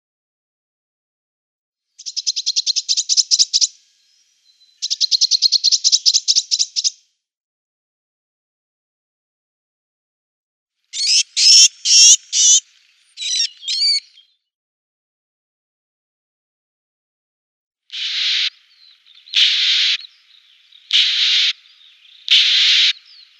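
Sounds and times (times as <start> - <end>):
Eurasian Blue Tit calls: 2.0 - 7.0, 11.0 - 14.4, 17.9 - 23.3.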